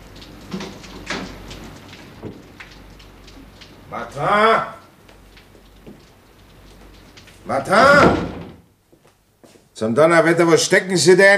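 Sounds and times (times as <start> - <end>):
speech: 3.9 - 4.8, 7.5 - 8.2, 9.8 - 11.3
office door being opened: 7.4 - 8.7.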